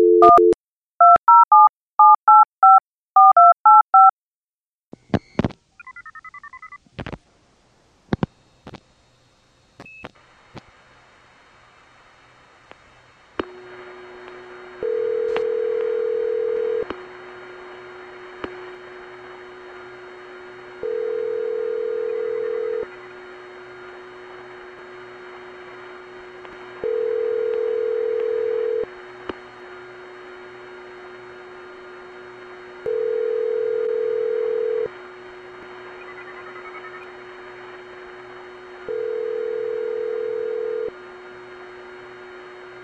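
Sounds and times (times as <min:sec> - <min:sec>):
telephone: 0:00.2 - 0:04.1, 0:14.8 - 0:16.9, 0:20.9 - 0:22.9, 0:26.9 - 0:28.9, 0:32.9 - 0:34.9, 0:38.9 - 0:40.9.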